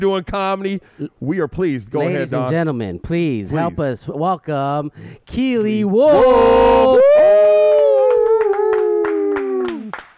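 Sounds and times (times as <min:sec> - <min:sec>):
speech: 0:00.0 - 0:07.3
long howl-like vocal whoop: 0:06.0 - 0:10.0
hands clapping: 0:07.6 - 0:10.1.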